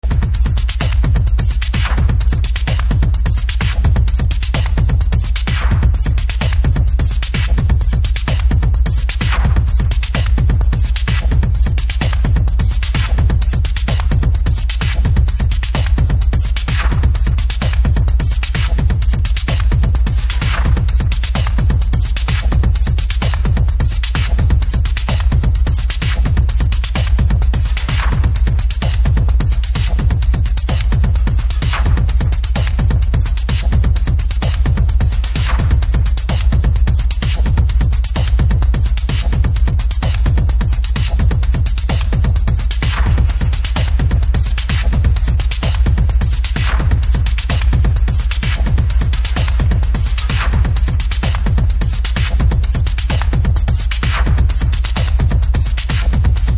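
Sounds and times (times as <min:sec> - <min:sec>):
percussion remix rhythm: 0:00.0 - 0:56.5.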